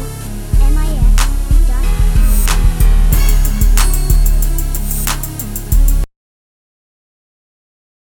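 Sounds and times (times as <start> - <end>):
crunk music: 0.0 - 6.1.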